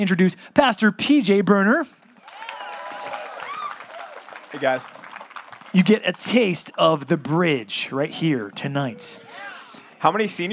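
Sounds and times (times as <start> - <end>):
speech: 0.0 - 2.0, 4.5 - 5.0, 5.7 - 10.5
audience applause: 2.1 - 7.0
crowd cheering and whooping: 2.2 - 5.9.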